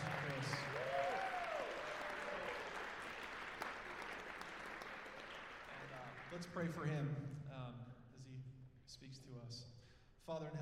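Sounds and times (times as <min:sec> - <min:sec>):
audience clapping welcoming a pastor: 0:00.0 - 0:06.8
speech: 0:06.4 - 0:10.5.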